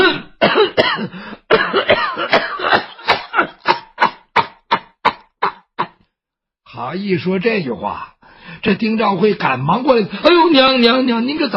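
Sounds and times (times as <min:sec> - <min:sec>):
voice imitating a fit of coughing: 0:00.0 - 0:06.0
speech: 0:06.8 - 0:11.5.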